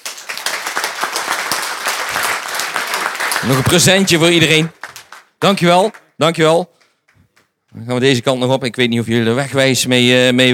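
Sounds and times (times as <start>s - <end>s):
audience applause: 0.0s - 6.1s
speech: 3.4s - 4.8s, 5.4s - 6.8s, 7.8s - 10.5s.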